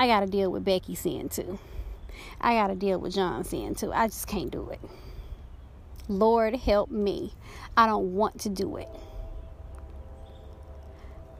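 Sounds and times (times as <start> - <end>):
speech: 0.0 - 5.1, 6.1 - 9.1
low continuous rumble: 8.6 - 11.3
train horn: 8.8 - 11.3.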